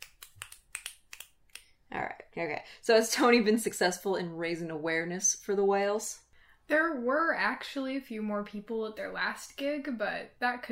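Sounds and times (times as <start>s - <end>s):
finger snapping in approval: 0.0s - 1.7s
speech: 1.9s - 10.7s.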